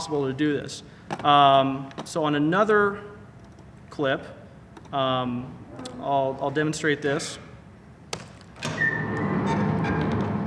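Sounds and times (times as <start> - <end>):
speech: 0.0 - 3.2, 4.0 - 7.4
door squeaking canned sound effect: 8.6 - 10.4.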